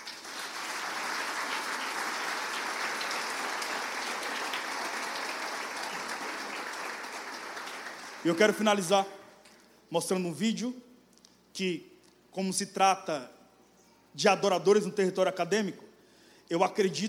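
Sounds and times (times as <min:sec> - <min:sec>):
audience applause: 0:00.0 - 0:08.6
speech: 0:08.2 - 0:09.2, 0:09.9 - 0:10.9, 0:11.6 - 0:13.4, 0:14.2 - 0:15.8, 0:16.5 - 0:17.0.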